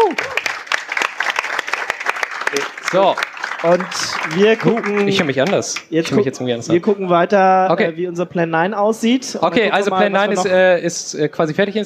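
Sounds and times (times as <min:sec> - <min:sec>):
audience applause: 0:00.0 - 0:06.0
speech: 0:02.5 - 0:11.8.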